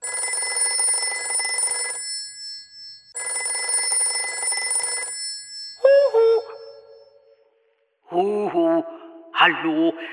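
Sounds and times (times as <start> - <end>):
telephone bell ringing: 0.0 - 7.2
speech: 9.4 - 10.1.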